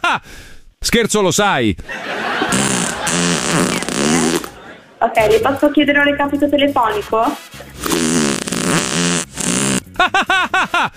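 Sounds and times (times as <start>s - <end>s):
speech: 0.1s - 7.7s
laughter: 1.8s - 5.4s, 10.0s - 10.9s
fart: 2.4s - 4.6s, 7.7s - 10.0s.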